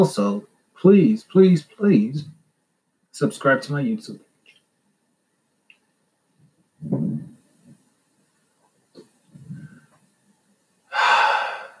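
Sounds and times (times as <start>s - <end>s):
speech: 0.0s - 2.4s, 3.2s - 4.3s
person breathing in and out: 10.9s - 11.7s.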